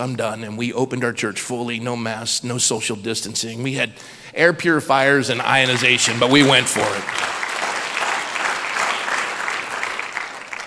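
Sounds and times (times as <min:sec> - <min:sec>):
speech: 0:00.0 - 0:07.4
audience clapping: 0:05.3 - 0:10.6.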